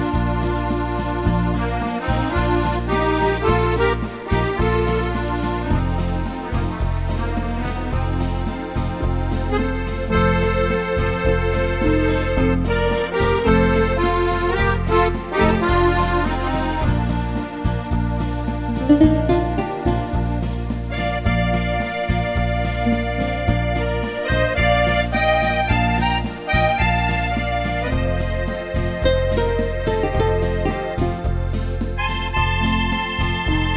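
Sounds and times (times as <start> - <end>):
accordion playing: 0.0 - 33.7.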